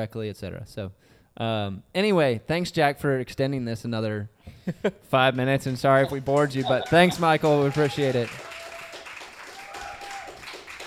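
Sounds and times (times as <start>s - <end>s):
speech: 0.0s - 8.5s
audience clapping: 5.4s - 10.8s.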